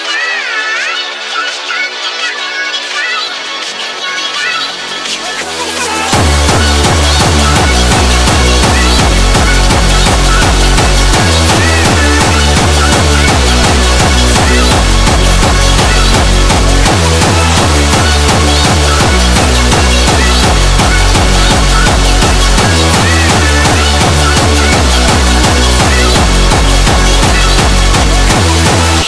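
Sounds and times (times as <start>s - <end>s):
sped up hardstyle remix: 0.1s - 29.0s.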